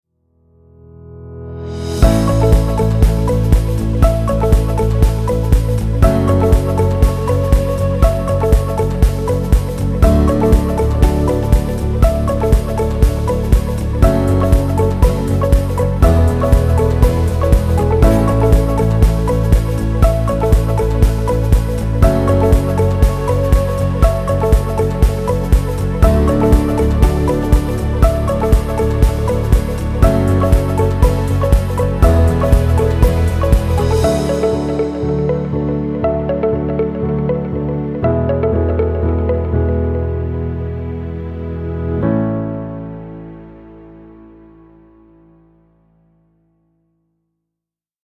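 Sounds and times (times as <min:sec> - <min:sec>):
inspirational music: 0:00.6 - 0:45.9.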